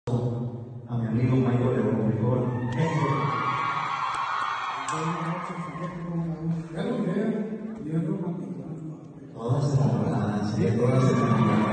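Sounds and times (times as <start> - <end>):
speech: 1.1 - 3.6, 4.9 - 8.4, 9.4 - 11.7
loud applause and cheering: 2.4 - 6.8, 10.7 - 11.7.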